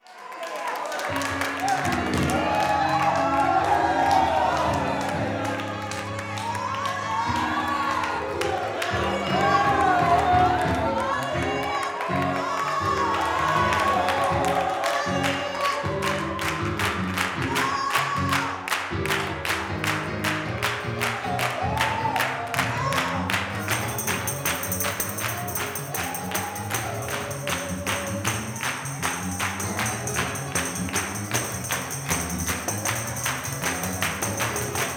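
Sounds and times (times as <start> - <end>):
gospel music: 0.8 - 34.9.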